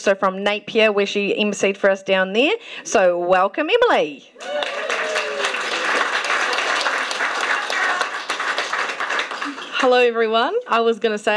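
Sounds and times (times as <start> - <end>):
speech: 0.0 - 4.8, 9.8 - 11.3
audience applause: 4.4 - 9.9.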